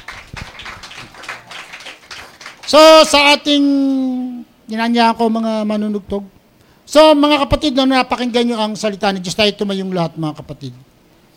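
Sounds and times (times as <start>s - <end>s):
church congregation applauding the Lord: 0.0s - 3.2s
speech: 2.7s - 4.1s, 4.7s - 10.9s.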